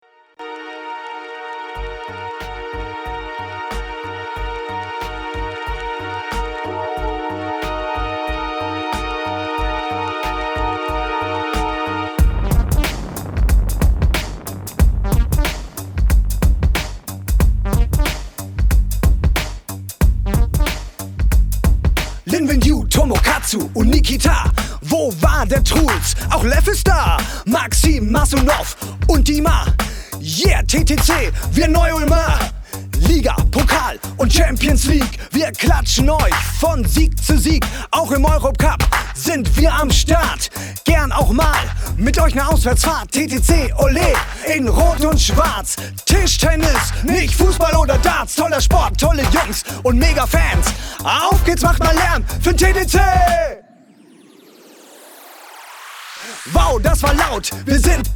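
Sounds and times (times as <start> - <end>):
rap music: 1.8 - 13.4, 14.1 - 54.2, 56.2 - 58.1.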